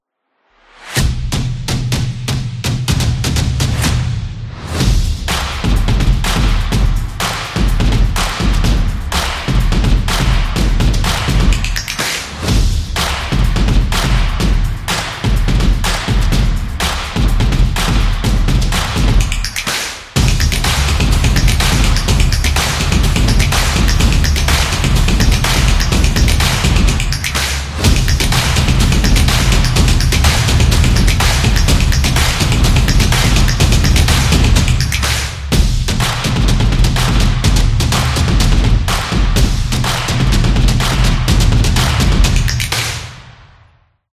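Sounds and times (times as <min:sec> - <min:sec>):
drum opener: 0:01.0 - 0:43.4.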